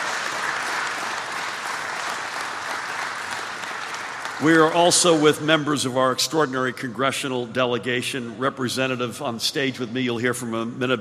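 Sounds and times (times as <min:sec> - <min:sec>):
New Jersey crowd applauding to welcome President Joe Biden: 0:00.0 - 0:05.3
speech: 0:04.4 - 0:10.9.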